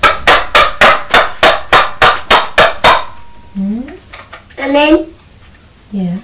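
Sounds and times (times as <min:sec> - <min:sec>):
plastic yogurt pots bashed together: 0:00.0 - 0:03.3
speech: 0:04.6 - 0:05.1.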